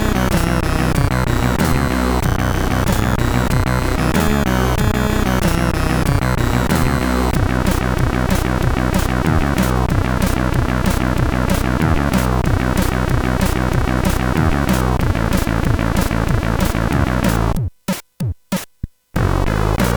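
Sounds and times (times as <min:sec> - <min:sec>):
folk mix chiptune on SID chip: 0:00.0 - 0:19.9.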